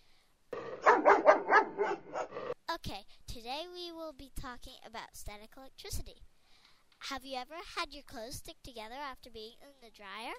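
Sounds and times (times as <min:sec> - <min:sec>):
dog barking: 0:00.7 - 0:02.6
speech: 0:02.8 - 0:06.3, 0:07.0 - 0:10.3.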